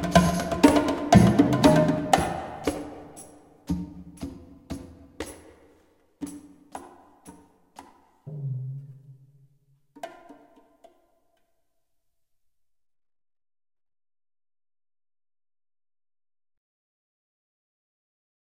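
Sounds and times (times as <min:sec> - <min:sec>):
tabla playing: 0:00.0 - 0:05.4, 0:08.3 - 0:09.4.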